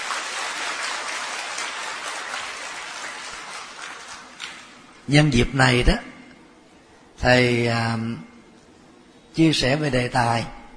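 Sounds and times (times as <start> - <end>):
audience applause: 0.0 - 4.9
speech: 5.1 - 6.1, 7.2 - 8.3, 9.4 - 10.6.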